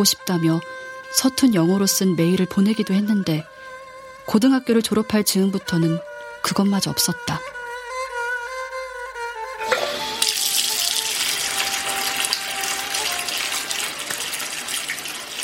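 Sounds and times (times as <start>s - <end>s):
speech: 0.0s - 3.6s, 4.3s - 7.6s
water running from a tap: 9.7s - 15.4s
hands being washed: 9.9s - 15.4s.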